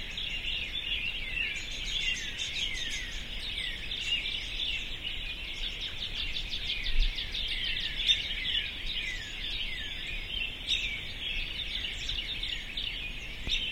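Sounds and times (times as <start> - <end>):
birds singing in a dense chorus: 0.0 - 13.7.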